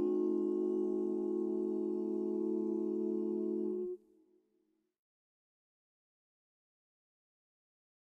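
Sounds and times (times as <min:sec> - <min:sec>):
vocal quartet singing gospel: 0:00.0 - 0:04.0.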